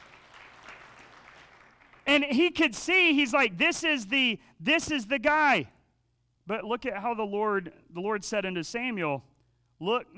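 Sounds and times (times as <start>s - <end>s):
audience clapping: 0.0s - 2.1s
speech: 2.2s - 5.8s, 6.5s - 10.1s.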